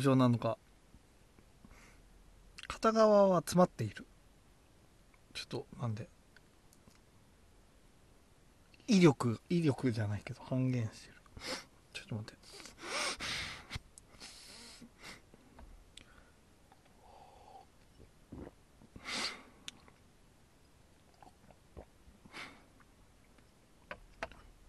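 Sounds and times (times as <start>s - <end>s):
speech: 0.0s - 0.7s, 2.7s - 4.1s, 5.4s - 6.2s, 8.9s - 13.3s
man sniffling: 11.4s - 11.7s, 12.4s - 15.3s, 19.0s - 19.6s, 22.3s - 22.7s
man gulping beer: 16.7s - 19.0s, 21.0s - 22.0s.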